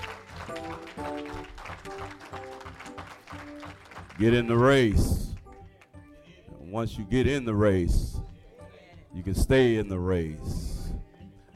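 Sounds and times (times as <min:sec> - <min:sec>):
audience hand clapping: 0:00.0 - 0:06.0
speech: 0:01.0 - 0:05.4, 0:06.7 - 0:08.3, 0:09.2 - 0:10.7.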